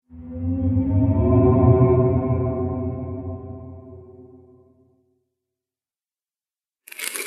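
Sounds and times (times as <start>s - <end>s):
creepy horror noises: 0.1s - 4.6s.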